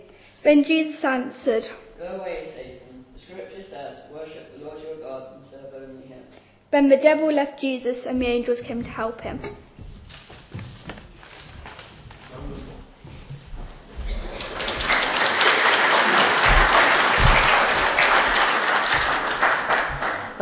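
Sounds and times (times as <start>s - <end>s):
speech: 0.4s - 2.7s, 6.7s - 9.6s
audience clapping: 14.1s - 20.4s.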